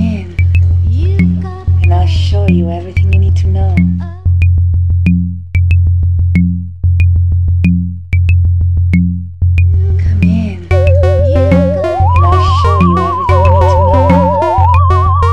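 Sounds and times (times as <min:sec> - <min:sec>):
octave bump: 0:00.3 - 0:15.3.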